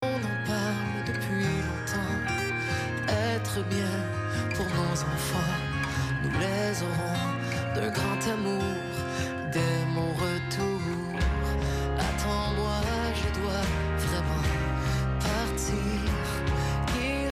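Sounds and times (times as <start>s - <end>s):
music on digital cable: 0.0s - 17.3s.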